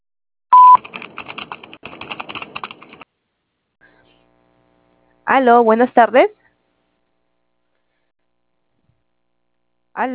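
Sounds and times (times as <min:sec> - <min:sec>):
voicemail recording tone beep: 0:00.5 - 0:00.8
speech: 0:05.3 - 0:06.4.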